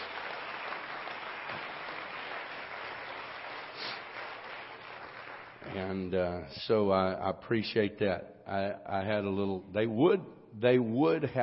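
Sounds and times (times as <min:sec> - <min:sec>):
audience applause: 0:00.0 - 0:06.0
speech: 0:05.7 - 0:11.4.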